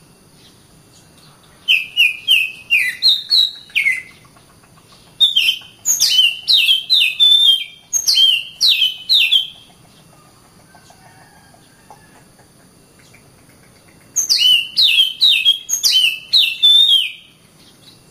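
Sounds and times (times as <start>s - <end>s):
Oriental magpie-robin singing clear whistled notes: 1.6s - 10.1s, 14.1s - 18.1s.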